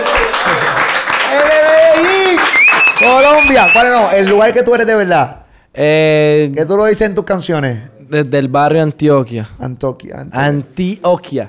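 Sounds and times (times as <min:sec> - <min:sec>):
applause: 0:00.0 - 0:04.4
speech: 0:03.3 - 0:11.4.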